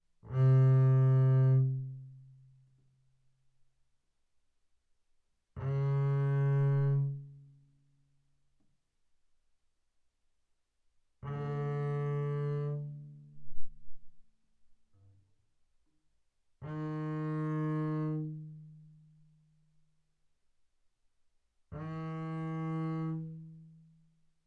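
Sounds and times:
double bass bowed arco sul D fortissimo: 0.2s - 2.6s, 5.6s - 7.6s, 11.2s - 14.2s, 16.6s - 19.3s, 21.8s - 24.0s.

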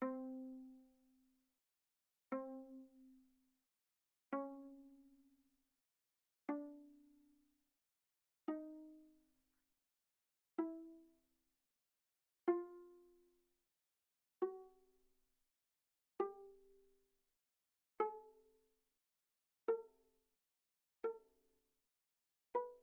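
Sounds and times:
viola pizzicato on the G string pianissimo: 0.0s - 0.9s, 2.3s - 3.1s, 4.4s - 5.1s, 6.5s - 7.2s, 8.5s - 9.2s, 10.6s - 11.0s, 12.5s - 13.2s, 14.4s - 15.0s, 16.2s - 16.8s, 18.0s - 18.4s, 19.7s - 19.9s, 22.6s - 22.8s.

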